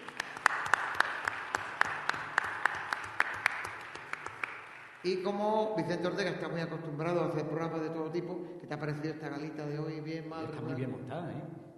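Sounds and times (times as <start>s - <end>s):
audience applause: 0.0s - 5.0s
speech: 5.0s - 11.6s.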